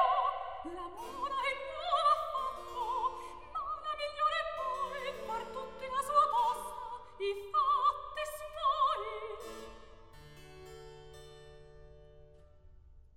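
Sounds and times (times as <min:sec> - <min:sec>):
recitative singing: 0:00.0 - 0:09.4.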